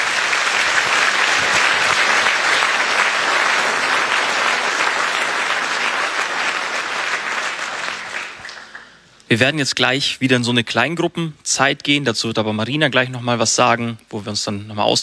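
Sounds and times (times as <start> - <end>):
audience applause: 0.0 - 9.0
speech: 9.3 - 15.0.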